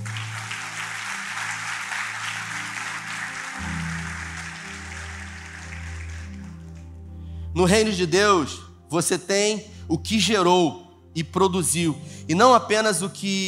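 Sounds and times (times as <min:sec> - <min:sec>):
audience applauding: 0:00.0 - 0:07.0
speech: 0:07.6 - 0:13.4.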